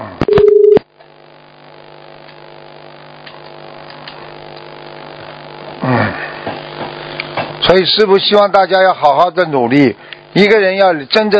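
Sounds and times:
faint hum: 0:00.0 - 0:11.3
electronic telephone tone: 0:00.2 - 0:00.8
speech: 0:07.7 - 0:11.3.

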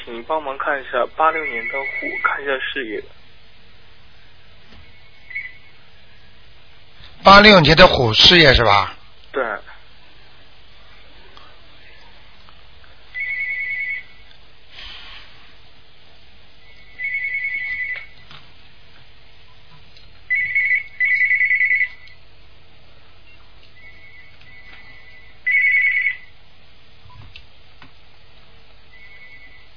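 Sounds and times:
speech: 0:00.1 - 0:03.2, 0:07.2 - 0:09.7
phone ringing with a bright electronic tone: 0:01.2 - 0:02.5, 0:05.3 - 0:05.8, 0:13.2 - 0:14.2, 0:17.0 - 0:18.2, 0:20.3 - 0:22.1, 0:23.8 - 0:26.3, 0:28.9 - 0:29.7.

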